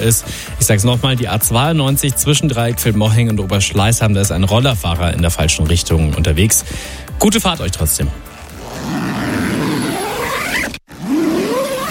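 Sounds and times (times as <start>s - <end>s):
speech: 0.0s - 8.3s
zipper being closed: 8.2s - 11.8s.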